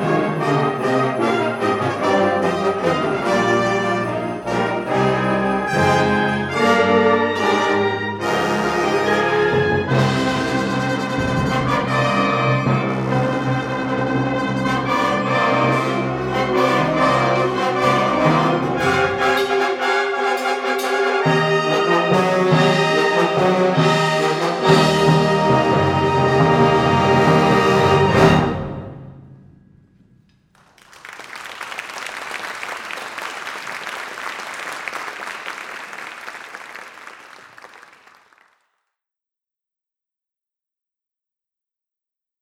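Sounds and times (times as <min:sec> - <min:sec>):
fanfare: 0:00.0 - 0:28.8.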